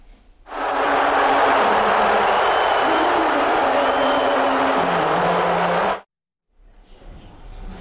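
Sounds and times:
large arena crowd cheering and booing: 0:00.5 - 0:06.1.

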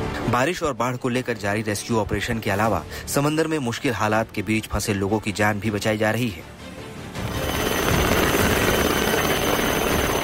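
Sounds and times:
speech: 0:00.3 - 0:06.6
coast guard rescue helicopter: 0:07.0 - 0:10.2.

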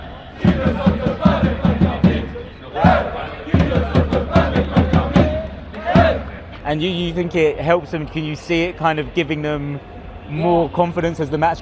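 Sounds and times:
loud crowd roaring and chanting at an esports LAN event: 0:00.0 - 0:06.7
speech: 0:00.4 - 0:01.3, 0:06.7 - 0:11.6
rhythmic claps or stomps: 0:00.4 - 0:06.4.

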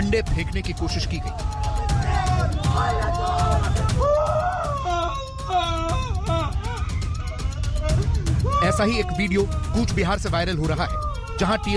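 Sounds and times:
angry crowd uproar: 0:00.0 - 0:11.7
laughter: 0:00.0 - 0:11.7
speech: 0:00.1 - 0:01.7, 0:02.4 - 0:04.0, 0:08.6 - 0:11.7.

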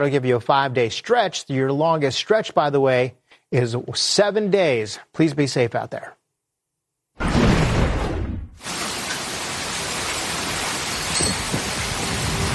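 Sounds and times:
speech: 0:00.0 - 0:06.2
monsoon thunder over the Southwest: 0:07.2 - 0:08.6
heavy monsoon rain over the Southwest: 0:08.6 - 0:12.5.

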